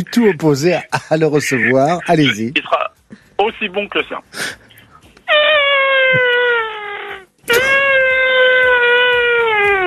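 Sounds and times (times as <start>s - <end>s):
speech: 0.0s - 4.6s
person imitating an elephant's trumpet: 5.3s - 9.8s.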